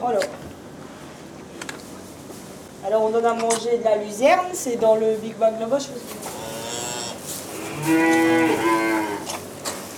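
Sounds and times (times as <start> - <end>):
speech: 0.0 - 0.6, 2.8 - 6.4, 7.9 - 8.6
calves mooing on a farm: 6.2 - 9.4.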